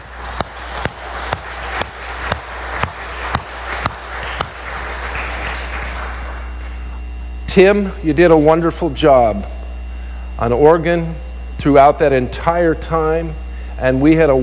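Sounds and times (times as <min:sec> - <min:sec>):
audience applause: 0:00.0 - 0:06.5
speech: 0:07.6 - 0:09.6, 0:10.4 - 0:14.4.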